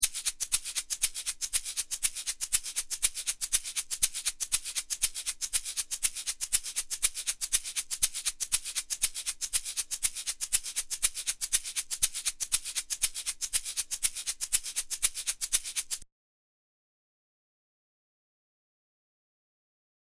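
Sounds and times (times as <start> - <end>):
shaker: 0.0 - 16.0.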